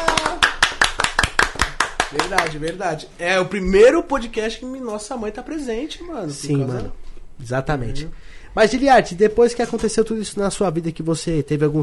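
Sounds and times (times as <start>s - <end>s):
hands clapping: 0.0s - 2.9s
speech: 2.1s - 11.8s.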